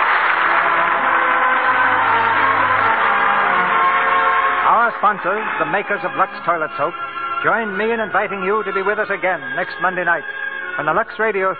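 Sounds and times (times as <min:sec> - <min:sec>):
studio audience applause: 0:00.0 - 0:05.1
speech: 0:05.0 - 0:11.5.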